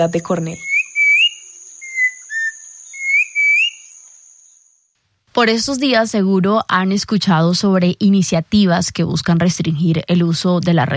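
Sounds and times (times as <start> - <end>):
speech: 0.0 - 0.7, 5.4 - 10.9
turpial montañero trilling: 0.0 - 4.6.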